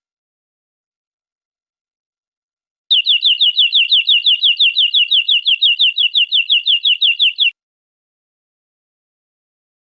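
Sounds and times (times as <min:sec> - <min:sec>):
European greenfinch buzzy trill: 0:02.9 - 0:07.5.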